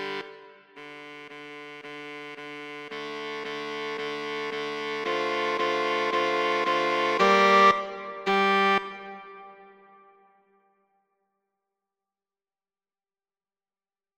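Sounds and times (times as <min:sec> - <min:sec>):
SATB saxophone quartet playing: 0:00.0 - 0:09.3.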